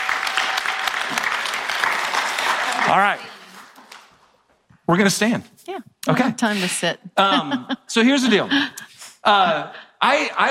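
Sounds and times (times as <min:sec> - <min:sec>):
audience clapping to welcome a speaker's wife: 0:00.0 - 0:04.4
speech: 0:02.9 - 0:03.3, 0:04.9 - 0:10.4
laughter: 0:07.2 - 0:09.8.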